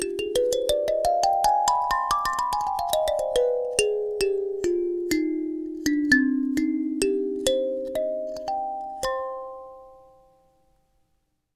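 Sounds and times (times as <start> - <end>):
karimba playing in Freygish mode: 0.0 - 10.4.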